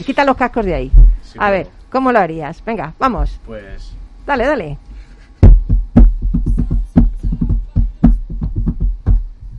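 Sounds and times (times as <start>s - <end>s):
speech: 0.0s - 4.9s
drum-kit beat tapped out on a tabletop: 5.4s - 9.5s.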